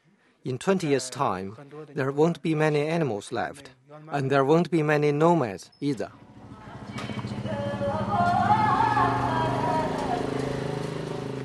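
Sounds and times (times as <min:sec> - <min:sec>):
speech: 0:00.4 - 0:06.3
motorbike engine rumbling: 0:06.0 - 0:11.4.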